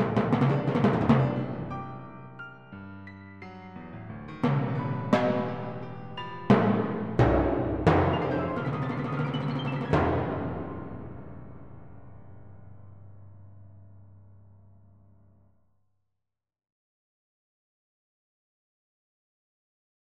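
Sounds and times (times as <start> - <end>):
timpani: 0.0 - 14.0
piano: 0.0 - 15.6.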